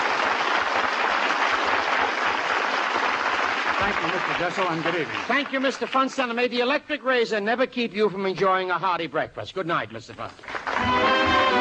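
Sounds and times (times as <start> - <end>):
studio audience applause: 0.0 - 6.4, 10.4 - 11.5
speech: 3.9 - 11.1.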